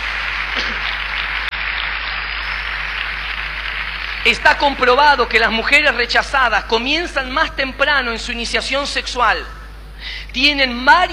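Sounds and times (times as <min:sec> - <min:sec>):
audience applause: 0:00.0 - 0:05.4
speech: 0:04.2 - 0:09.6, 0:10.3 - 0:11.1.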